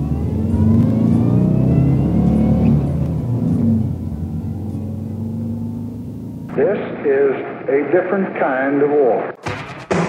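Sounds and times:
van engine revving, accelerating hard across a border: 0.0s - 7.1s
speech: 7.1s - 9.4s.

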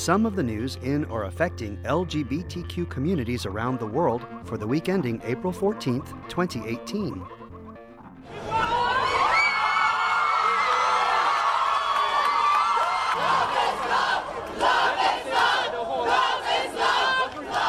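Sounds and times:
speech: 0.0s - 7.4s
crowd cheering on the steps of the High Court of Trinidad and Tobago: 8.2s - 17.6s
people whooping and shouting on the steps of the High Court of Trinidad and Tobago: 8.3s - 14.3s.

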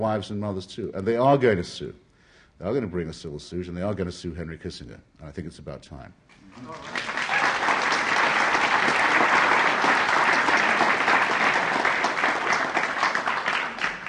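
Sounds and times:
speech: 0.0s - 2.0s, 2.6s - 7.1s
crowd applauding: 6.5s - 14.0s.

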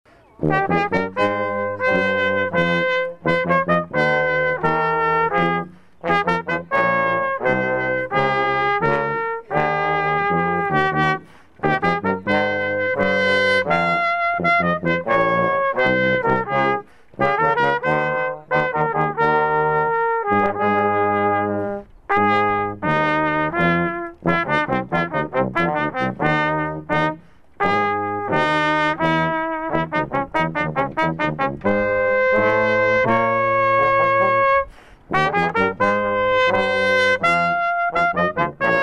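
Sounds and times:
brass band playing: 0.4s - 38.8s.

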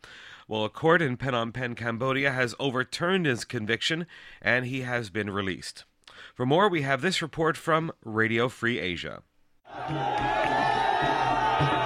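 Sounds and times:
speech: 0.5s - 10.4s
hundreds of supporters cheering a released activist in Phnom Penh: 9.7s - 11.8s.

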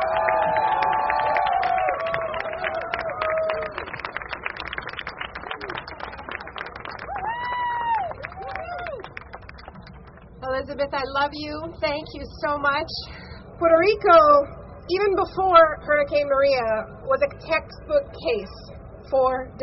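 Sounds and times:
audience applause: 0.0s - 10.2s
speech: 10.6s - 19.6s.

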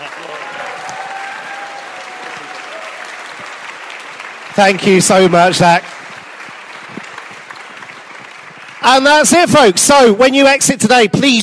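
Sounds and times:
faint cheers: 0.0s - 3.6s
audience applause: 0.0s - 10.4s
speech: 4.6s - 5.9s, 8.8s - 11.4s.

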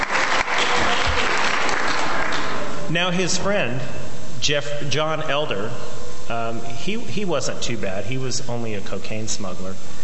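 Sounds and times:
audience applause: 0.0s - 2.7s
speech: 2.9s - 10.0s.

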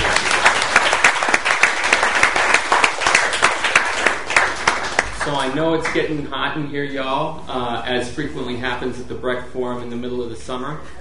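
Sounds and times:
audience applause for the panelists: 0.0s - 5.6s
speech: 5.5s - 10.9s.

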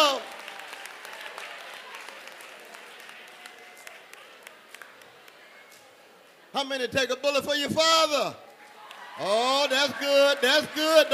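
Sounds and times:
audience applause: 0.0s - 5.1s, 8.8s - 11.1s
speech: 6.6s - 8.4s, 9.2s - 11.1s.

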